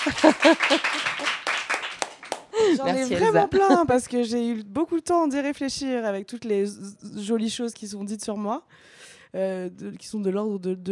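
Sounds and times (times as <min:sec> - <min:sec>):
speech: 0:00.0 - 0:01.4, 0:02.6 - 0:10.9
laughing voices: 0:00.0 - 0:01.5, 0:02.6 - 0:04.0
hand clapping: 0:00.0 - 0:03.7.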